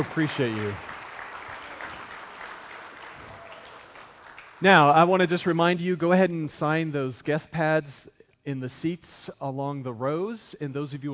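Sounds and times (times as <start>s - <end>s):
speech: 0.0s - 0.9s, 4.6s - 11.1s
audience applause: 0.0s - 5.1s.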